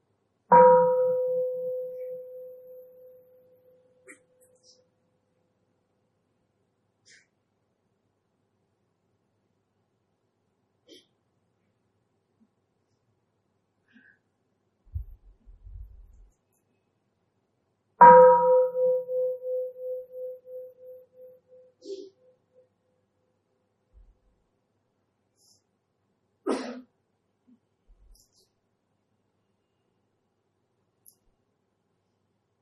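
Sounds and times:
mindfulness meditation bell ringing: 0.5s - 2.7s, 18.0s - 20.9s.

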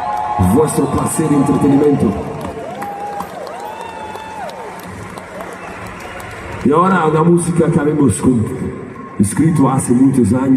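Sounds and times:
metal festival crowd applauding and cheering: 0.0s - 10.5s
speech: 0.4s - 2.3s, 6.6s - 10.5s
whistles: 5.5s - 6.4s.

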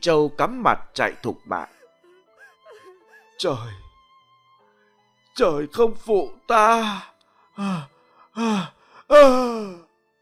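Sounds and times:
speech: 0.0s - 1.8s, 3.4s - 3.8s, 5.4s - 9.9s
old woman gasping her last breaths before dying: 1.6s - 3.4s, 7.6s - 9.8s.

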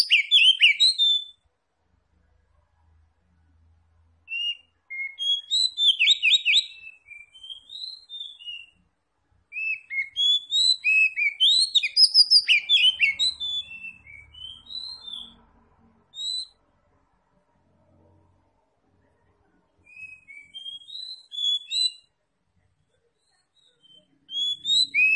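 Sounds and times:
Oriental magpie-robin song: 0.0s - 1.4s, 4.3s - 8.9s, 9.5s - 15.4s, 16.1s - 16.6s, 19.8s - 22.1s, 23.0s - 25.1s.

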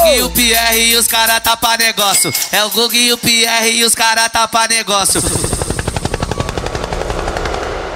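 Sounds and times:
speech: 0.1s - 5.8s
helicopter rotor effect in a live DJ show: 5.1s - 7.9s.

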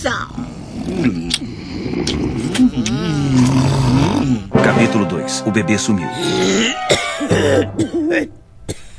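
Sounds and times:
speech: 0.0s - 1.5s, 5.0s - 8.4s
woman snoring: 0.4s - 4.5s.

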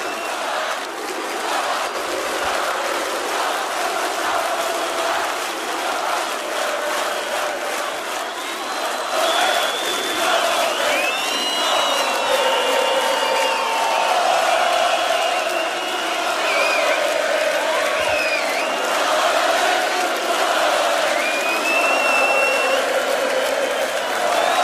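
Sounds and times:
festival crowd whistles and whoops: 0.0s - 0.6s, 8.2s - 18.8s, 21.1s - 22.9s, 23.7s - 24.6s
festival crowd cheering at an electronic DJ live set at RFM Somnii 2016 in Portugal: 0.0s - 24.6s.

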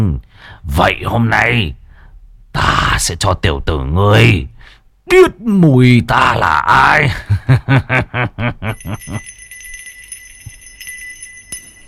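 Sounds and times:
speech: 0.0s - 1.8s, 2.6s - 9.4s
handbell being shaken: 8.7s - 11.8s.

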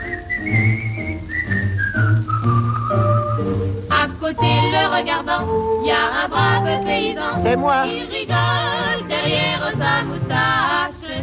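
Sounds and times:
fisherman at the water's edge whistling a tune: 0.0s - 3.8s
speech: 0.4s - 0.9s, 5.0s - 11.2s.

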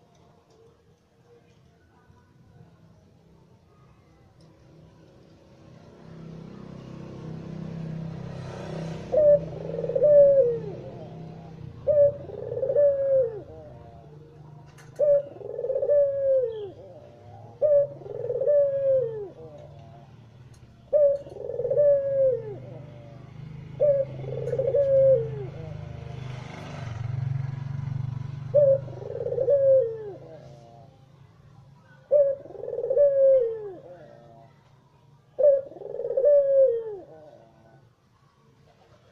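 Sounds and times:
Barbary dove cooing: 7.7s - 26.3s, 27.1s - 39.0s.

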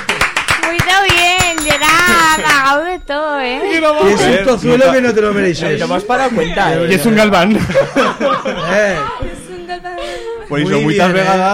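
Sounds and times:
audience applause: 0.0s - 1.7s
speech: 2.7s - 11.5s
laughter: 5.8s - 10.8s.

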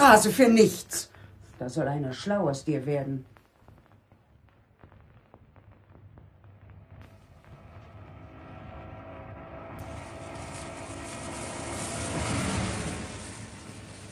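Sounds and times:
speech: 0.1s - 3.3s
Trabant 601 S car driving past: 7.0s - 14.1s.

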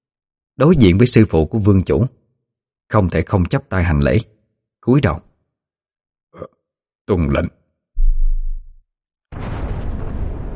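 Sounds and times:
speech: 0.6s - 2.2s, 2.9s - 5.3s, 6.3s - 7.6s
deep rumbling boom: 8.0s - 8.8s, 9.4s - 10.5s
booming creatures in battle: 9.4s - 10.5s.

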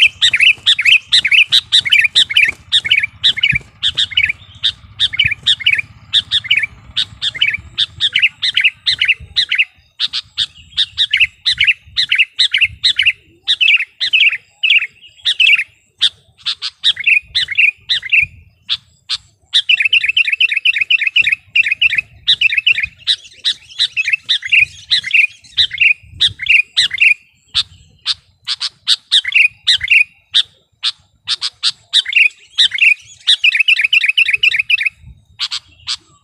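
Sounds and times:
soft low hum: 0.0s - 9.4s
sooty-headed bulbul chattering song: 0.0s - 36.2s.

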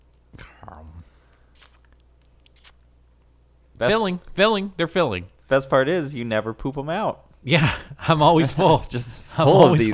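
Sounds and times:
crunchy peanuts being chewed: 1.6s - 2.8s
speech: 3.8s - 9.9s.

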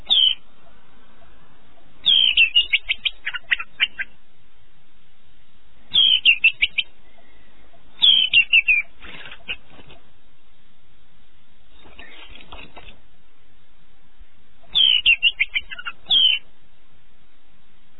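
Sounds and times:
canary singing a high warbling trill in the early morning: 0.0s - 0.4s, 2.0s - 4.2s, 5.9s - 7.4s, 8.0s - 10.0s, 14.6s - 16.5s.

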